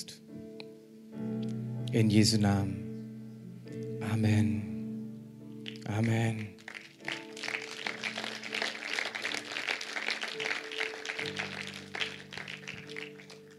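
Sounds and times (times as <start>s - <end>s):
speech: 1.9s - 2.8s, 4.2s - 4.6s, 5.9s - 6.6s
audience applauding: 5.6s - 13.5s.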